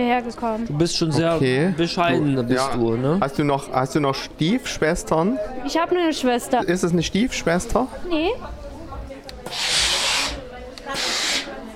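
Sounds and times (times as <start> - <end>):
speech: 0.0 - 8.6, 9.5 - 9.7
steam iron hissing while ironing: 9.4 - 11.6.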